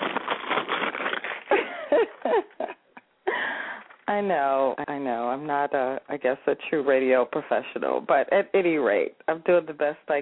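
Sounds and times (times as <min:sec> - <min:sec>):
paper rustling in a windowed business envelope: 0:00.0 - 0:02.2
speech: 0:04.1 - 0:10.2.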